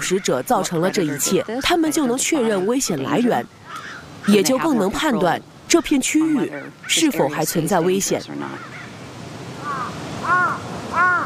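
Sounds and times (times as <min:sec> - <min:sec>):
crows cawing: 0:00.0 - 0:01.8, 0:03.6 - 0:04.6, 0:08.4 - 0:09.0, 0:09.6 - 0:11.2
speech: 0:00.0 - 0:08.9.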